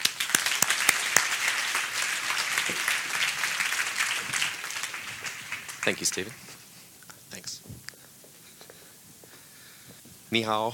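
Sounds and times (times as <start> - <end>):
audience applause: 0.0 - 6.8
speech: 5.8 - 6.5, 10.3 - 10.7.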